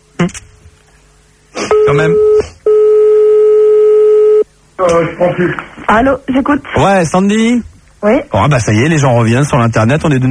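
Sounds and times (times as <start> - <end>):
speech: 0.2 - 0.5, 1.9 - 2.5, 5.0 - 10.2
telephone line tone while calling someone back: 1.7 - 4.4.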